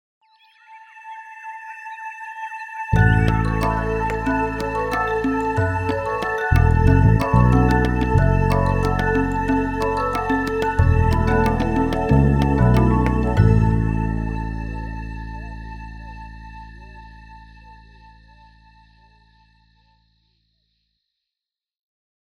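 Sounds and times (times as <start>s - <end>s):
forest jingle: 3.0s - 15.5s.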